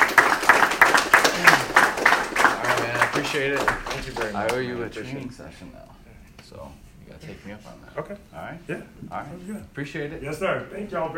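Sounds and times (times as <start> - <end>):
audience clapping: 0.0 - 4.9
speech: 3.4 - 11.1.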